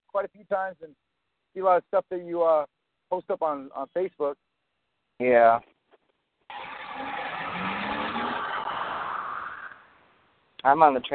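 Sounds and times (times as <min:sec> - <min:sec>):
speech: 0:00.2 - 0:04.4, 0:05.2 - 0:05.7, 0:10.6 - 0:11.1
car driving heard over phone call: 0:06.5 - 0:10.0.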